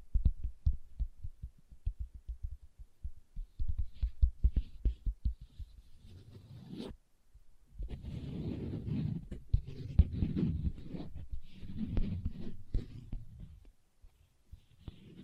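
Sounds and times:
leather tapped quickly with soft low thumps: 0:00.0 - 0:05.9
rough scratching and rubbing of leather: 0:03.6 - 0:07.0, 0:07.8 - 0:15.2.

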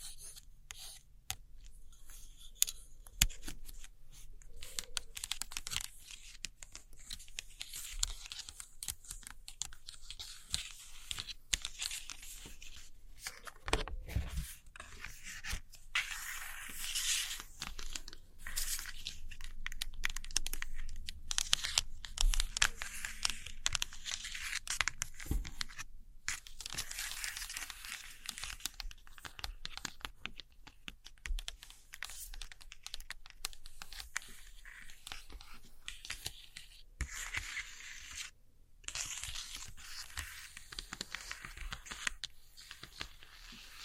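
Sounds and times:
scratchy tapping and tracing over old postcards: 0:00.0 - 0:43.8.

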